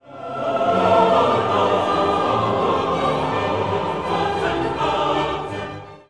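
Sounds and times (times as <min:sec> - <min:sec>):
choir singing: 0:00.0 - 0:06.0.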